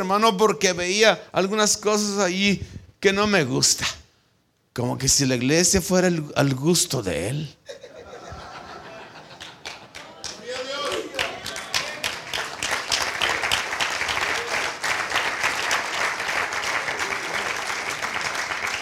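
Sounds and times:
speech: 0.0s - 4.0s, 4.8s - 7.8s
laughter: 7.7s - 12.0s
audience applauding: 8.9s - 18.8s.

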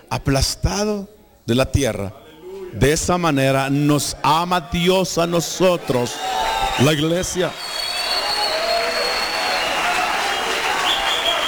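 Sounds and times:
speech: 0.1s - 7.6s
audience clapping: 6.1s - 11.4s.

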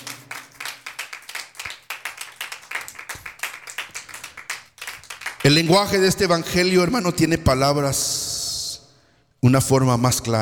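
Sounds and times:
people clapping: 0.0s - 6.4s
speech: 5.4s - 8.3s, 9.4s - 10.4s.

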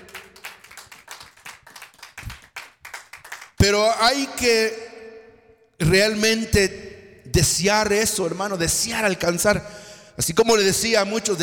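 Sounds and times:
audience clapping hands: 0.0s - 3.7s
speech: 3.6s - 4.8s, 5.8s - 11.4s.

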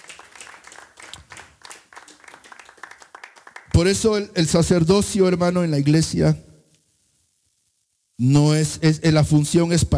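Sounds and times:
audience clapping hands: 0.0s - 4.0s
speech: 3.8s - 6.5s, 8.2s - 9.9s.

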